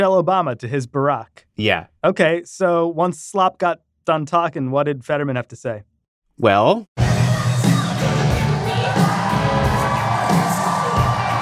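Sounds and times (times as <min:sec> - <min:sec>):
speech: 0:00.0 - 0:07.0
political rally crowd in Scranton cheering as John Fetterman takes the stage: 0:07.7 - 0:11.3.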